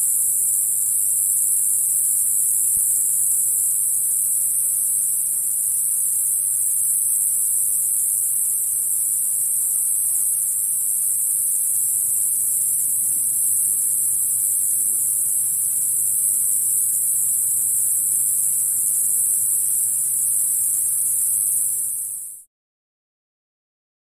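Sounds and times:
cicadas ratcheting: 0.0s - 22.4s.

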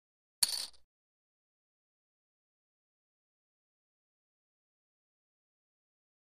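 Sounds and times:
poker chips tossed: 0.4s - 0.8s.

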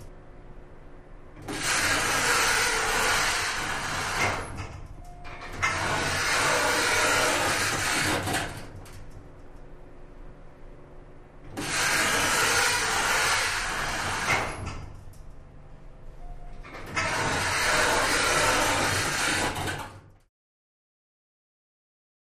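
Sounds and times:
elevator door opening: 1.3s - 9.2s, 11.4s - 15.1s, 16.2s - 20.1s.

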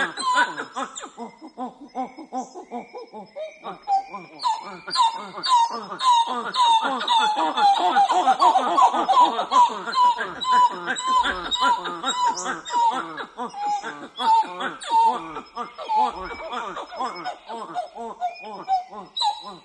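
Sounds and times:
titi monkey hooting: 0.0s - 19.6s
laughter: 5.8s - 19.3s.

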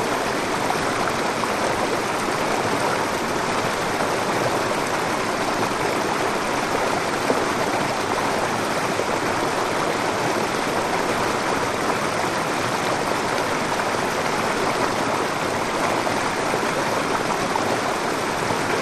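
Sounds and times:
medium waterfall: 0.0s - 18.7s.

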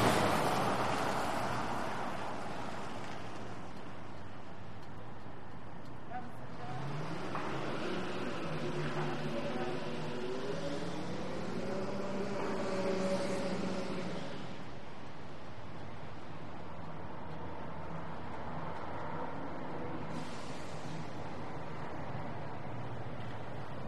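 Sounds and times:
tires through puddles on cobblestones: 0.0s - 23.8s
vehicles passing on wet cobblestone street at slow to medium speed: 0.0s - 23.8s.

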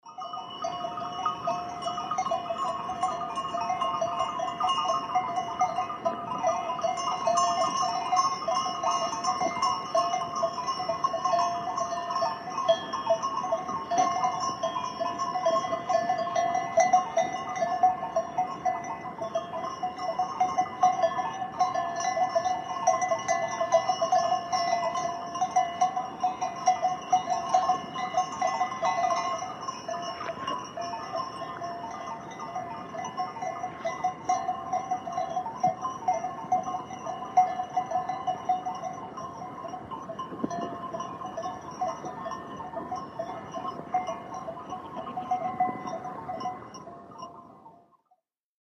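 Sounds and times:
goat bells in Ardeche, France: 0.0s - 48.2s.

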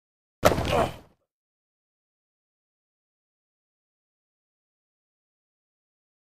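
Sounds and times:
football player grunting while blocking: 0.5s - 1.1s.

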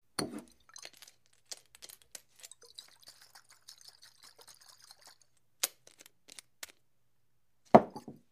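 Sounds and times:
bottle being shaken and picked up: 0.5s - 6.8s.

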